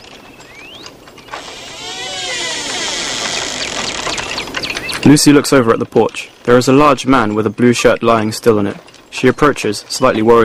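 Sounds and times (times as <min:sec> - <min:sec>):
shed door squeaking open: 0:00.4 - 0:05.0
speech: 0:05.0 - 0:10.4.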